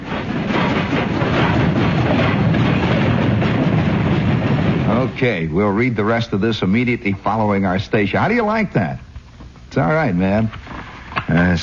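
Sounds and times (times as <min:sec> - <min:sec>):
train wheels clacking over rail joints: 0:00.0 - 0:06.1
speech: 0:05.1 - 0:09.1, 0:09.8 - 0:10.7, 0:11.3 - 0:11.6.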